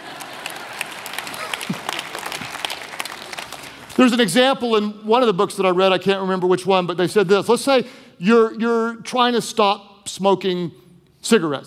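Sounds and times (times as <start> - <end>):
audience clapping: 0.0 - 4.3
speech: 4.0 - 11.6.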